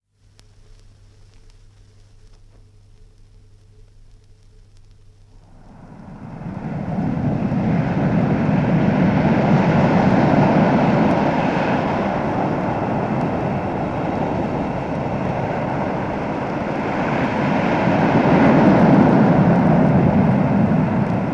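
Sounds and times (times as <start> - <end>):
heavy sea breaking on shore: 5.4 - 21.3.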